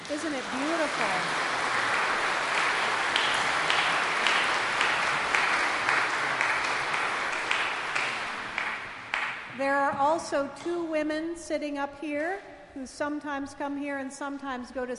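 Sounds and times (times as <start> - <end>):
audience applause: 0.0 - 9.5
speech: 0.1 - 1.6, 9.6 - 14.9.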